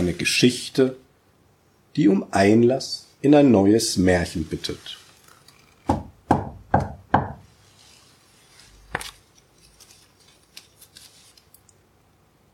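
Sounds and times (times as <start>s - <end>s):
speech: 0.0s - 1.0s, 2.0s - 5.0s
knocking on the door of the gingerbread house: 5.9s - 7.4s.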